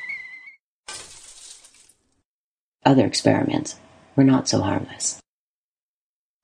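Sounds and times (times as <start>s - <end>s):
light bulb glass clinking and shattering: 0.9s - 2.1s
speech: 2.9s - 5.2s.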